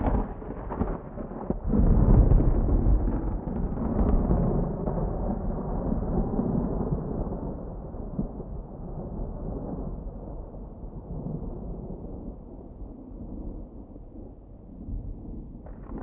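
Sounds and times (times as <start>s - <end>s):
distant thunder: 0.0s - 7.2s.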